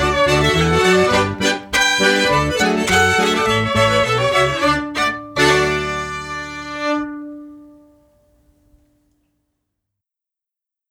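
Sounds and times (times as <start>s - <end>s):
polka music: 0.0s - 7.8s.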